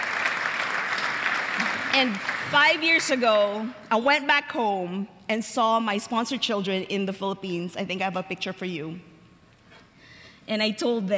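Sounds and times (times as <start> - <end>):
audience clapping in praise: 0.0 - 3.7
speech: 2.0 - 9.1, 10.5 - 11.1.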